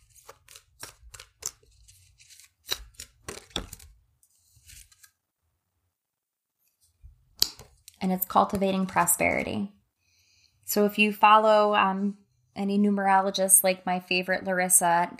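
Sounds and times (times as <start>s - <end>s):
oracle card deck being shuffled: 0.0s - 5.2s, 7.4s - 9.4s
speech: 8.0s - 9.8s, 10.8s - 15.1s.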